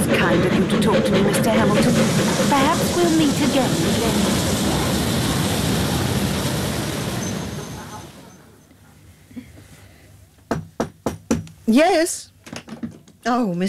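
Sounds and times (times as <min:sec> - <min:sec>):
approaching train: 0:00.0 - 0:08.9
speech: 0:00.2 - 0:04.8, 0:11.7 - 0:12.3, 0:13.2 - 0:13.6.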